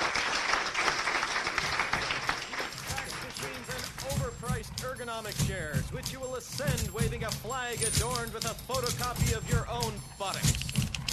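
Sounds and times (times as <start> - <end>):
audience applauding: 0.0 - 5.3
cheering and voices: 1.9 - 10.5
speech: 5.1 - 10.6.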